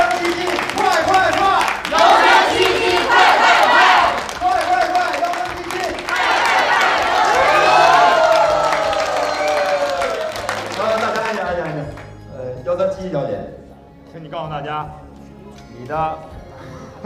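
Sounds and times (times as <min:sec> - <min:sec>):
audience clapping: 0:00.0 - 0:12.3
voices shouting and cheering: 0:00.8 - 0:11.0
speech: 0:15.8 - 0:16.3.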